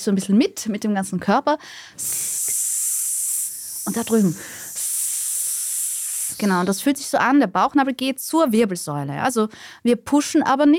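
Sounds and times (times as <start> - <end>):
speech: 0.0 - 2.6, 3.9 - 4.8, 6.4 - 10.7
voice imitating a spray can with a steady bright hiss: 2.0 - 7.0.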